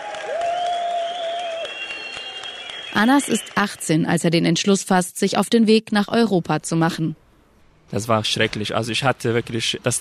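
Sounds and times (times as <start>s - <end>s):
crowd applauding arriving refugees at station: 0.0s - 4.1s
whistle-like tone: 0.6s - 3.9s
speech: 3.0s - 7.2s, 7.9s - 10.0s.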